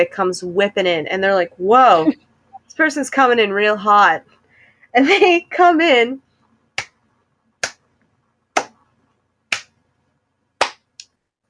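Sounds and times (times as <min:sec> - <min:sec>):
speech: 0:00.0 - 0:06.2
slow clapping: 0:09.5 - 0:09.7.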